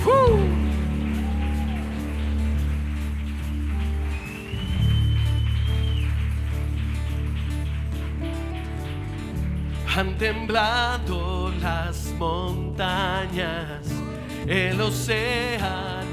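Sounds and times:
audience applause: 0:00.0 - 0:10.5
speech: 0:10.0 - 0:16.0.

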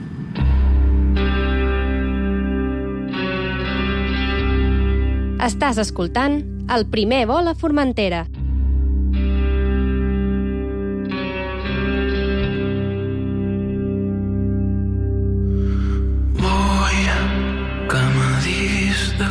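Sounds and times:
atmospheric pop music: 0:00.3 - 0:07.4, 0:08.3 - 0:19.2
speech: 0:05.4 - 0:08.3.

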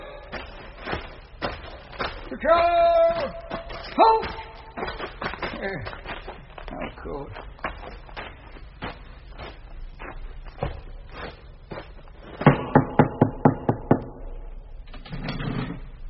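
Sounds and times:
speech: 0:02.3 - 0:03.4, 0:04.0 - 0:06.0, 0:06.8 - 0:07.5
knocking at a gate: 0:12.5 - 0:14.2.

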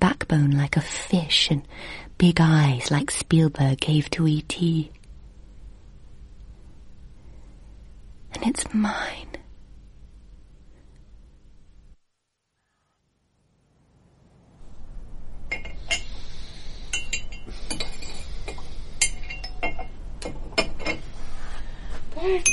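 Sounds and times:
low hum: 0:00.0 - 0:22.5
speech: 0:00.1 - 0:05.0, 0:08.4 - 0:09.3, 0:22.2 - 0:22.5
steady hiss: 0:05.5 - 0:22.5
spoon clinking against a cup while making tea: 0:16.9 - 0:19.9.

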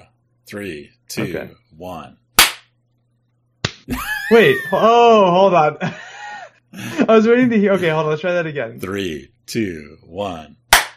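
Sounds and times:
speech: 0:00.5 - 0:02.2, 0:03.9 - 0:06.0, 0:06.7 - 0:10.6
hand claps for sync: 0:02.4 - 0:02.7, 0:03.6 - 0:03.9, 0:10.7 - 0:10.9
voice or laughter: 0:03.9 - 0:05.2.

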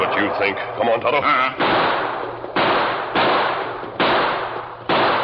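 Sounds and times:
speech: 0:00.1 - 0:02.0
gunshots in a radio drama: 0:01.5 - 0:05.2.

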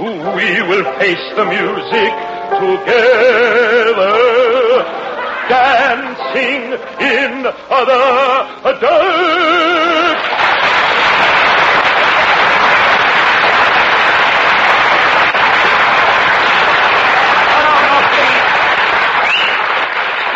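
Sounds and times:
speech: 0:00.2 - 0:10.3
studio audience applause: 0:09.8 - 0:20.3.

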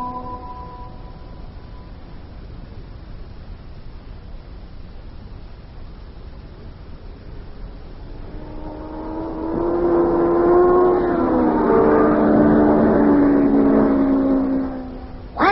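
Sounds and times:
race car passing at high speed on a racetrack: 0:08.0 - 0:15.4.

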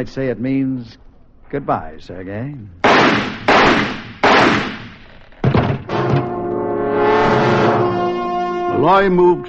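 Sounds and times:
speech: 0:00.0 - 0:04.0, 0:08.8 - 0:09.4
gunshots: 0:02.8 - 0:06.4
sustained swelling musical tone: 0:06.0 - 0:09.4.

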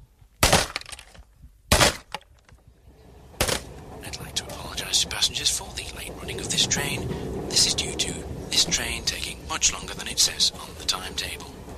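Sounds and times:
sledgehammer smashing a tape recorder: 0:00.4 - 0:02.5, 0:03.4 - 0:03.7
rattling crunching debris of breaking plastic and metal: 0:00.4 - 0:02.6, 0:03.4 - 0:03.7
speech: 0:04.9 - 0:11.6.

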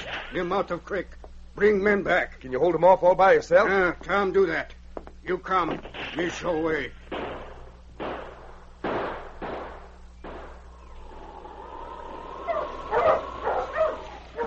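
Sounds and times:
speech: 0:00.3 - 0:07.0
husky sled dogs barking: 0:11.1 - 0:14.4.

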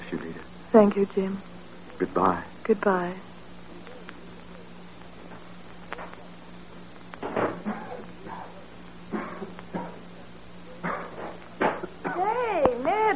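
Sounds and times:
speech: 0:00.7 - 0:03.3
harsh coughing: 0:07.6 - 0:10.0, 0:10.8 - 0:12.3.

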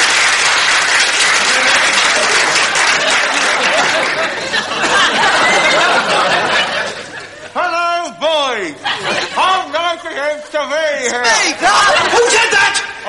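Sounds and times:
applause: 0:00.0 - 0:04.7
laughter: 0:01.4 - 0:07.6, 0:08.6 - 0:13.0
speech: 0:10.4 - 0:13.0.

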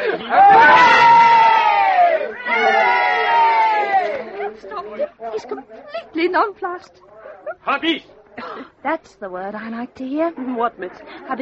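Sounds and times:
crowd cheering: 0:00.0 - 0:04.7
speech: 0:00.2 - 0:00.7, 0:05.4 - 0:11.4.

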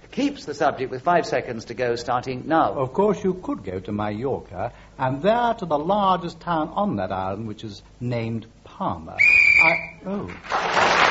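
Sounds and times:
speech: 0:00.2 - 0:11.0
whistle blown to end the round: 0:09.2 - 0:10.1.

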